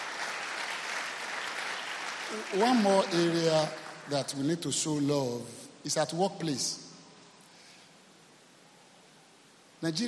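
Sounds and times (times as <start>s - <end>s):
congregation clapping during a sermon: 0.0s - 5.1s
speech: 2.3s - 6.8s, 9.8s - 10.0s.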